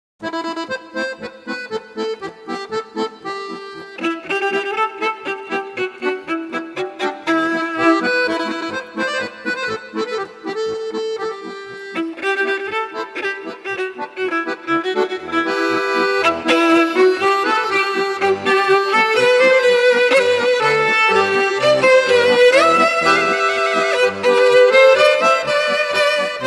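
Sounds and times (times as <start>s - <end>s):
instrumental music: 0.2s - 26.4s.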